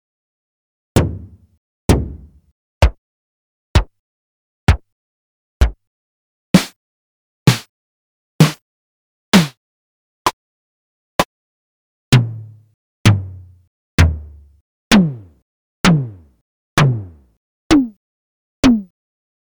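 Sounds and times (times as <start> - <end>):
MFB-712 drum machine drums: 1.0 - 3.0, 4.7 - 4.9, 7.5 - 7.7, 8.4 - 8.6, 9.4 - 9.6, 12.1 - 18.0, 18.6 - 18.9.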